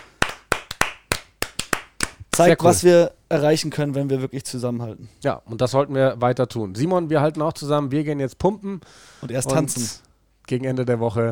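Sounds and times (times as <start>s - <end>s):
clapping: 0.0s - 2.5s
speech: 2.4s - 11.2s.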